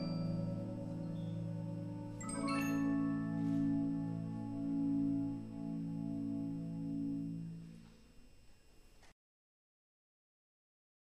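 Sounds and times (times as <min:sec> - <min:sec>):
bells ringing: 0:00.0 - 0:08.2.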